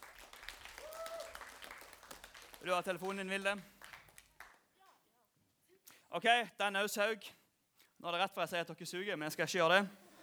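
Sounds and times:
audience applause: 0.0 - 4.6
speech: 2.6 - 3.8, 6.1 - 7.4, 8.0 - 10.0.

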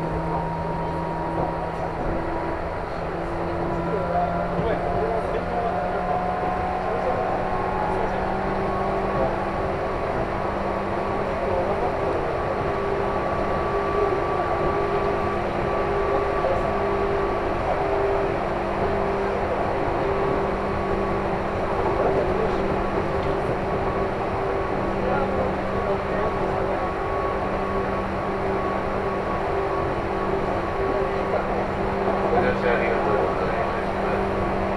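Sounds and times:
faint voices murmuring aboard a train: 0.0 - 34.7
local train low drone on the Chuo East Line: 0.0 - 34.7.

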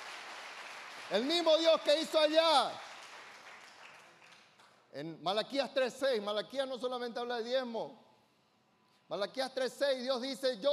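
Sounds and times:
audience applauding: 0.0 - 4.7
speech: 1.1 - 2.8, 4.9 - 8.0, 9.1 - 10.7.

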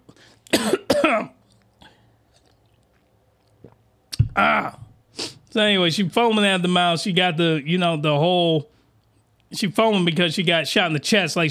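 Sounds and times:
harsh coughs from water in throat: 0.5 - 1.4
speech: 5.6 - 8.7, 9.5 - 11.4.

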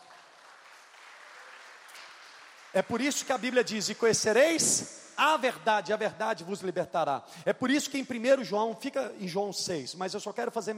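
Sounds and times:
audience applause: 0.0 - 3.5
speech: 2.7 - 10.7.

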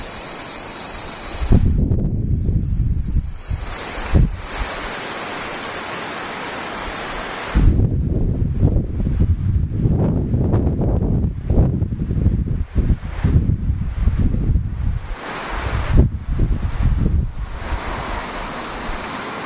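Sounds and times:
wind rushing over the microphone: 0.0 - 5.0, 6.9 - 19.4
cicadas droning: 0.0 - 19.4.

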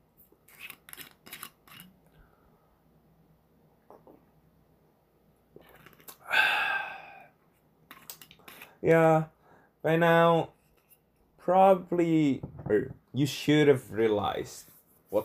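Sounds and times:
person sipping a drink: 5.6 - 7.3
speech: 8.8 - 10.6, 11.5 - 15.2.

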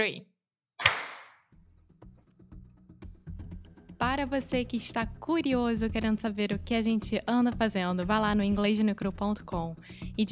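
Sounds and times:
speech: 0.0 - 0.3, 4.0 - 10.3
single hand clap for sync: 0.8 - 1.4.

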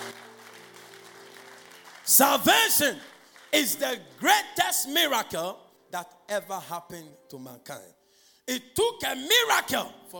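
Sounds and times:
audience clapping: 0.0 - 4.2
speech: 2.1 - 10.1.

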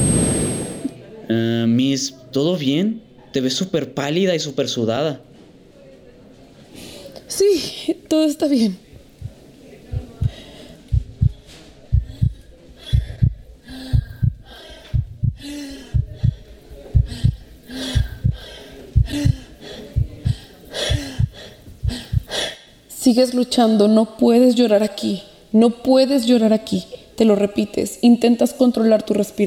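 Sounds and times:
heartbeat sound effect: 0.0 - 0.9, 9.2 - 22.4
speech: 1.3 - 5.3, 7.3 - 8.8, 23.0 - 29.4.

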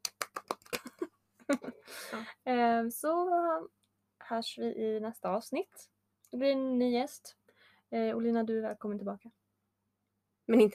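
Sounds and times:
applause: 0.0 - 1.0
speech: 1.5 - 9.4, 10.5 - 10.7.

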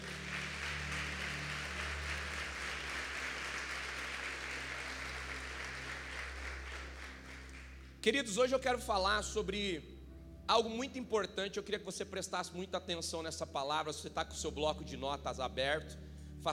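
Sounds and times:
audience applauding: 0.0 - 8.0
speech: 8.0 - 9.9, 10.5 - 16.5.

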